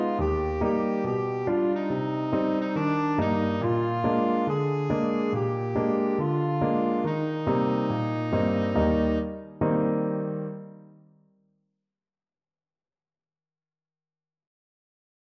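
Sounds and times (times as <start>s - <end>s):
tenor saxophone: 0.0s - 9.6s.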